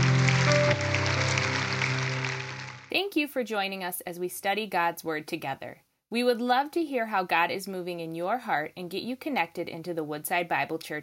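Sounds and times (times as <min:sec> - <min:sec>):
audience hand clapping: 0:00.0 - 0:02.9
sustained low musical tones: 0:00.0 - 0:02.9
speech: 0:03.0 - 0:11.0.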